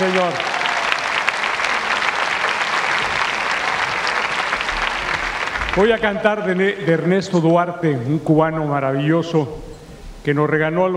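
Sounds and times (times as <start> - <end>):
speech: 0.0 - 0.5, 5.8 - 10.9
audience applause: 0.0 - 6.6.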